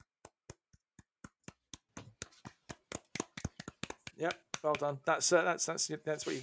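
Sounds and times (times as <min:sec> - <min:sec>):
small round of applause: 0:02.7 - 0:05.0
speech: 0:04.2 - 0:06.4.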